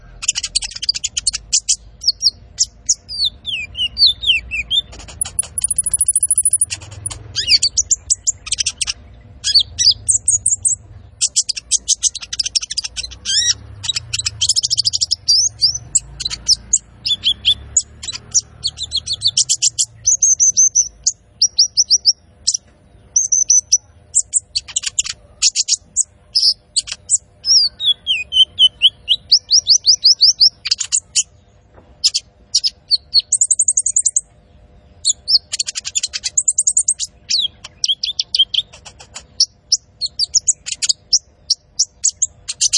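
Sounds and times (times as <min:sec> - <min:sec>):
Van Hasselt's sunbird singing: 0:00.0 - 0:42.7.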